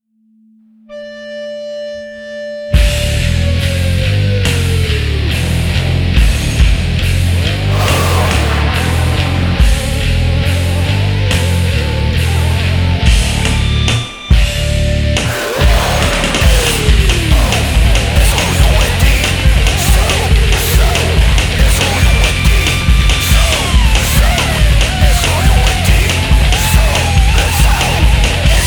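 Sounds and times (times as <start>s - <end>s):
rock music: 1.0s - 28.6s.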